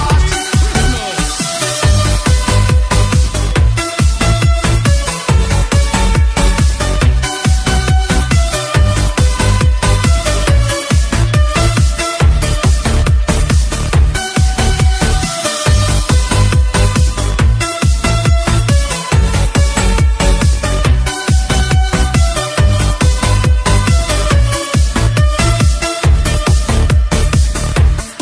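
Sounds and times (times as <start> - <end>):
christmas remix music: 0.0 - 28.2.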